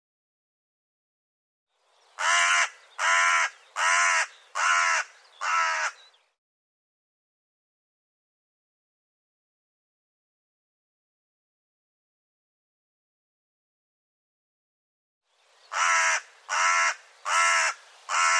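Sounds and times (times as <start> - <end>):
bird calling with coarse rasping caws: 2.2 - 6.1, 15.7 - 18.3.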